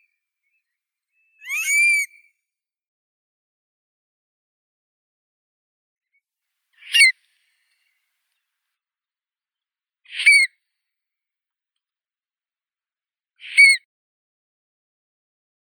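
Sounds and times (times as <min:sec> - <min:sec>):
Burhinus oedicnemus calling: 0:01.4 - 0:02.2.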